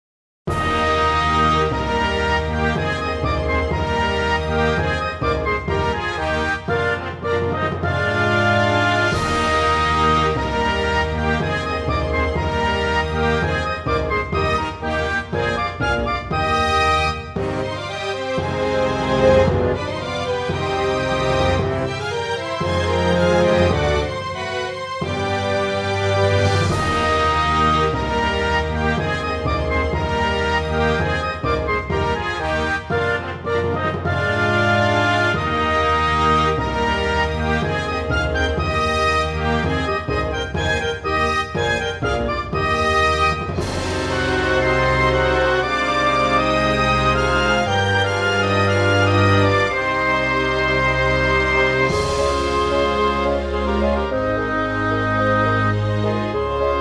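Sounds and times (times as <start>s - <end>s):
orchestra: 0.5s - 56.7s.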